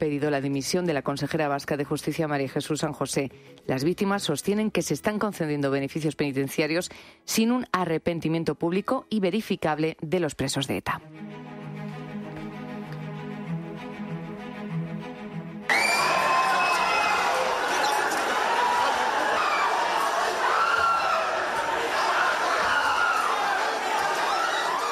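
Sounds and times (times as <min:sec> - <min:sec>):
speech: 0:00.0 - 0:11.4
crowd shouting at Bilbao airport arrivals in Loiu: 0:15.7 - 0:24.9.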